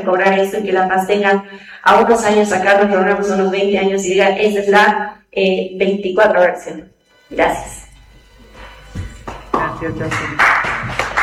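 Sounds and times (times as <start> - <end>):
speech: 0.0 - 7.8, 9.8 - 10.7
audience applause: 9.3 - 11.2.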